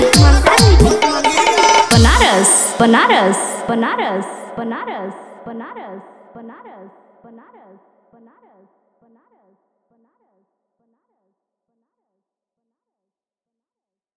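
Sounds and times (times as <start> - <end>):
old Bhojpuri DJ remix song: 0.0 - 6.1.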